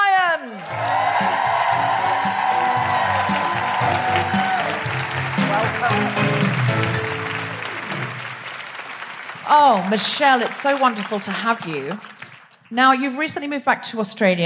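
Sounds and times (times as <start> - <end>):
audience whooping in welcome for a guest: 0.4 - 11.2
audience applause at a live show in Canberra: 0.4 - 12.7
speech: 9.5 - 12.1, 12.7 - 14.4.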